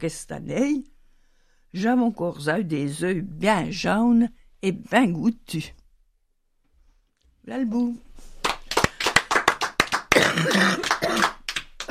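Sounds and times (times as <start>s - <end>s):
speech: 0.0s - 0.9s, 1.7s - 5.8s, 7.4s - 8.1s
small group clapping: 8.4s - 11.8s
person coughing: 10.1s - 11.8s.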